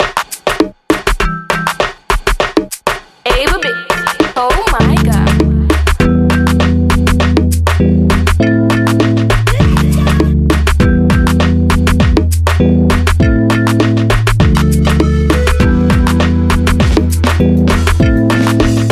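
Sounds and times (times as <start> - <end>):
instrumental music: 0.0 - 18.8.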